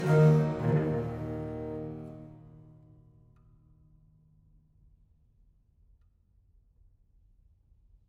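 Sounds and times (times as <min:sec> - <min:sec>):
viol suite in E minor: 0:00.0 - 0:02.9.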